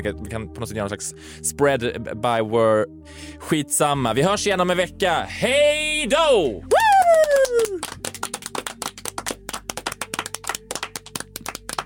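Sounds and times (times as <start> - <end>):
speech: 0.0 - 7.8
loud hand clapping: 6.7 - 11.8.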